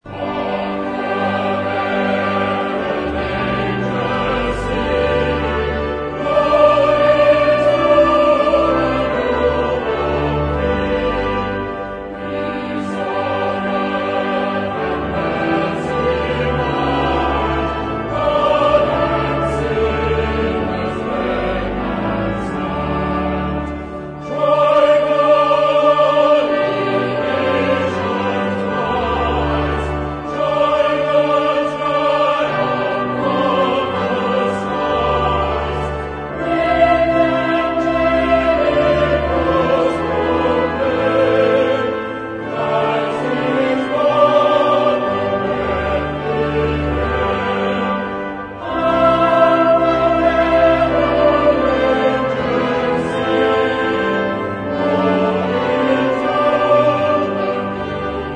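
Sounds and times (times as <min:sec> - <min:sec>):
chorus singing: 0:00.0 - 0:58.3.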